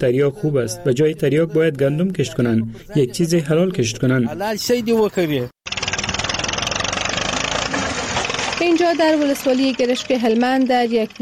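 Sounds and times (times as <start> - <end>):
speech: 0.0 - 5.6, 8.6 - 11.2
tractor engine running in a field: 5.6 - 11.2.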